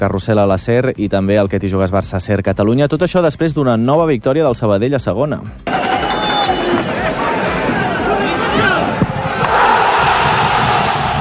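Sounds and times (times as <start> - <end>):
speech: 0.0 - 6.0
stadium crowd erupting in euphoric cheering: 5.6 - 11.1.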